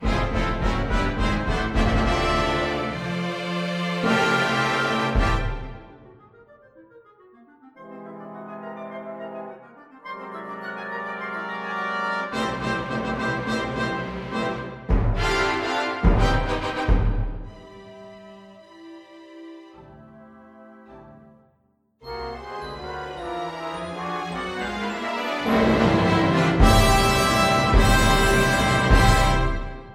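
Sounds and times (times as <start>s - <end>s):
fanfare: 0.0s - 18.1s, 22.0s - 29.9s.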